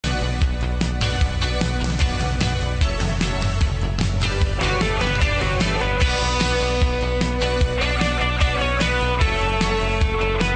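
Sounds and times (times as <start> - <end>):
disco-style music: 0.0 - 10.5.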